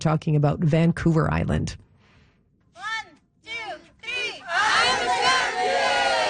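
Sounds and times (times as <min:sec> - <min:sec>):
speech: 0:00.0 - 0:01.8
kids shouting while playing soccer on Penelakut Island: 0:02.8 - 0:06.2.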